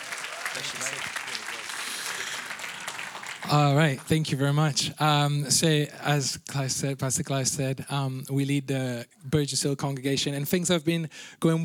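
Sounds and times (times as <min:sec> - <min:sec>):
audience applause: 0:00.0 - 0:04.3
speech: 0:00.5 - 0:02.6, 0:03.4 - 0:11.6.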